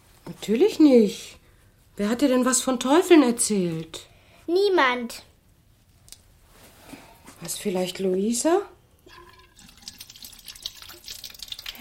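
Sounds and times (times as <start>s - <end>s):
speech: 0.3s - 1.4s, 2.0s - 5.3s, 7.4s - 9.2s
tap water running as someone washes their face: 9.0s - 11.7s.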